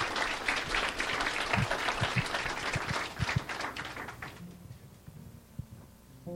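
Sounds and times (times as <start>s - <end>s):
audience hand clapping: 0.0s - 4.6s.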